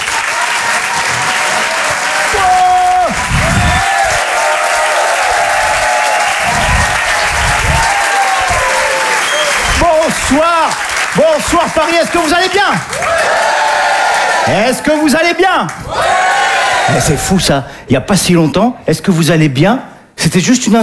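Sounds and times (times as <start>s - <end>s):
comedy audience applause at the Apollo Théâtre in Paris: 0.0s - 14.9s
audience shouts: 0.0s - 15.0s, 15.7s - 17.5s
speech: 10.3s - 13.2s, 14.4s - 15.8s, 16.9s - 20.8s.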